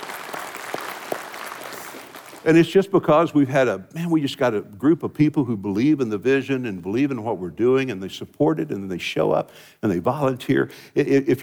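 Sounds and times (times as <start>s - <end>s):
crowd applauding: 0.0s - 2.6s
speech: 2.4s - 11.4s.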